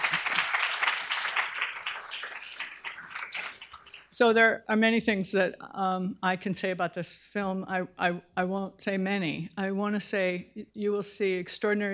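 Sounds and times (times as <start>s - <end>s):
audience applause: 0.0s - 4.1s
speech: 4.2s - 11.9s.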